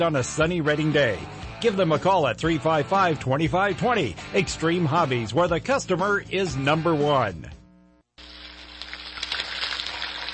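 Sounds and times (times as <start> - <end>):
speech: 0.0 - 7.6
turkey deep-frying in cooking oil: 8.2 - 10.3.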